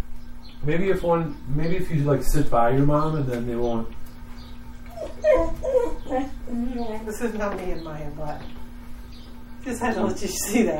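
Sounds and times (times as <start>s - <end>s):
speech: 0.6s - 4.0s, 5.2s - 8.6s, 9.6s - 10.7s
dog: 4.9s - 6.3s.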